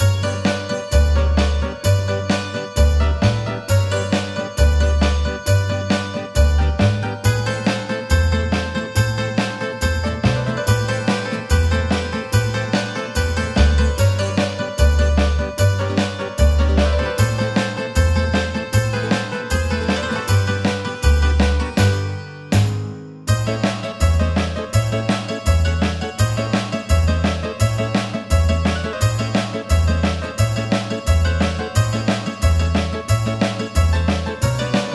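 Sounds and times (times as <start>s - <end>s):
sirtaki folk dance music: 0.0s - 34.9s.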